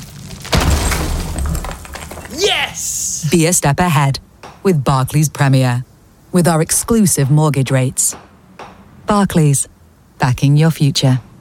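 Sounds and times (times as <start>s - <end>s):
thudding of walls being knocked through: 0.4s - 2.4s
speech: 2.4s - 8.3s, 9.1s - 11.3s.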